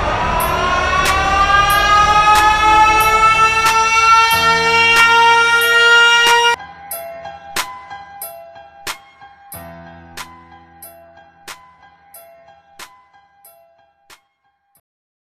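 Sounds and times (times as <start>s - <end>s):
siren: 0.0s - 6.6s.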